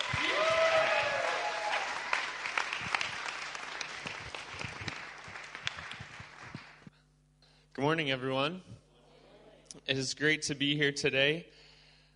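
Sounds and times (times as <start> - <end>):
audience applauding a speaker at a morning gathering: 0.0 - 6.9
speech: 7.8 - 8.8, 9.9 - 11.6.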